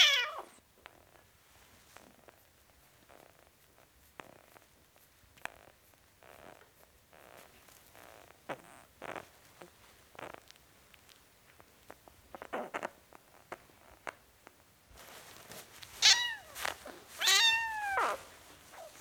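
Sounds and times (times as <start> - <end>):
four-week-old kitten meowing: 0.0 - 0.6, 16.0 - 16.6, 17.2 - 18.9.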